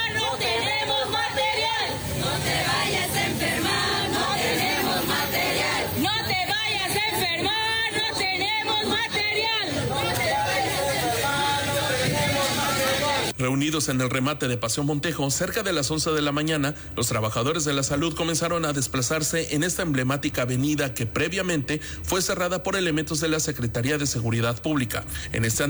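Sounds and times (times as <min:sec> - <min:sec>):
protesters chanting slogan: 0:00.0 - 0:13.4
speech: 0:13.5 - 0:25.6.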